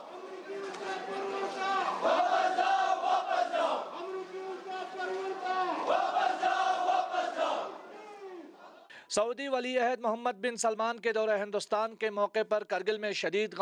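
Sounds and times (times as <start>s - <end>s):
protest crowd in Kargil chanting slogans against Mohammed bin Salman: 0.0s - 8.9s
speech: 9.2s - 13.5s.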